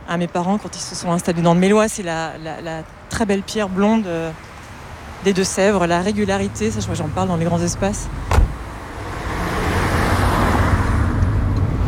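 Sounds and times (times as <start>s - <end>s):
speech: 0.1s - 4.5s, 5.2s - 8.4s
car engine rumble while driving on a road: 5.6s - 11.8s.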